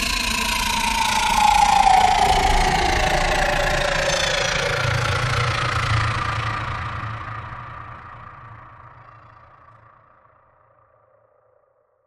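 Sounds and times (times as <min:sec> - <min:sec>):
spaceship landing: 0:00.1 - 0:07.4.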